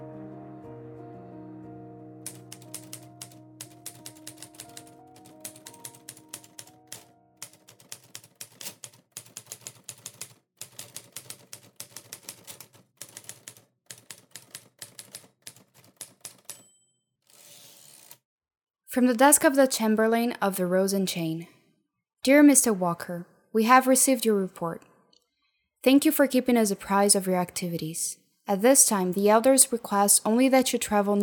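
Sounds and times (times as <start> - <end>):
woman typing on a typewriter: 2.2 - 16.6
speech: 18.9 - 21.5, 22.2 - 24.9, 25.8 - 31.2.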